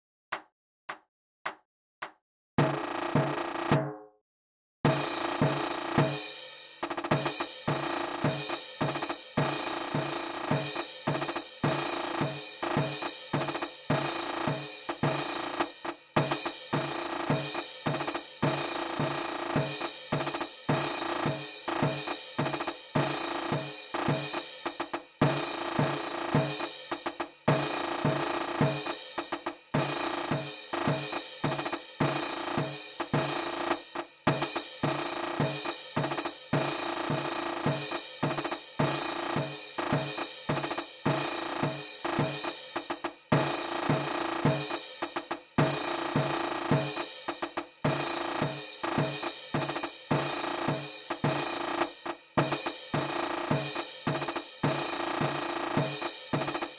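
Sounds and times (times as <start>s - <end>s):
Spielmannszug marching band percussion: 2.0s - 3.9s, 4.9s - 56.7s.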